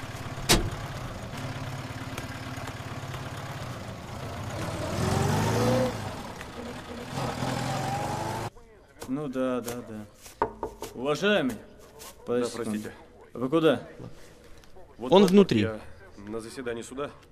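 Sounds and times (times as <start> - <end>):
car engine as car drives away: 0.0 - 8.5
speech: 9.1 - 10.4, 11.0 - 14.3, 15.0 - 17.3.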